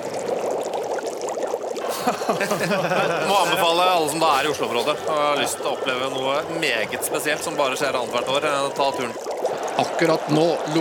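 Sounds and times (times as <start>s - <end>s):
pot of water at a rolling boil for pasta: 0.0s - 10.7s
laughter: 1.8s - 10.7s
speech: 2.0s - 10.7s.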